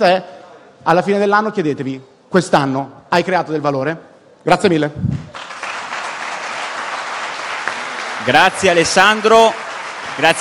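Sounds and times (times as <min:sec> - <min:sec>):
speech: 0:00.0 - 0:05.2, 0:08.2 - 0:10.3
audience applause after a talk at a conference: 0:05.3 - 0:10.3.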